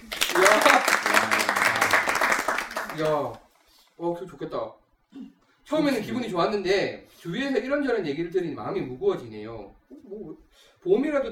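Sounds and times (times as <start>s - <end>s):
group applause: 0.0s - 3.5s
speech: 3.0s - 3.4s, 4.0s - 11.2s.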